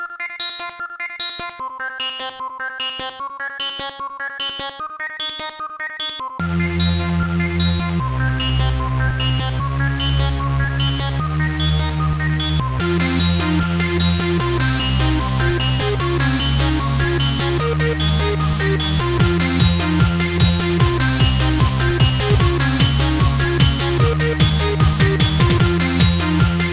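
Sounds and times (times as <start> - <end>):
tracker mod techno beat: 6.4 - 26.7.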